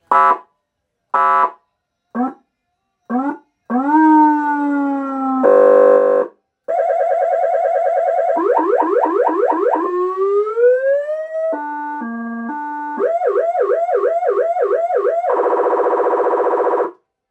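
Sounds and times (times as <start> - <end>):
professional 200 W 24 V warning system with microphone: 1.2 - 2.4, 3.1 - 17.0.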